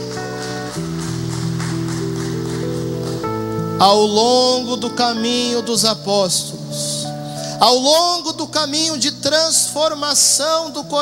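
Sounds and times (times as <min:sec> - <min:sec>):
audience applauding: 0:00.0 - 0:03.4
speech: 0:03.8 - 0:06.9, 0:07.6 - 0:11.0.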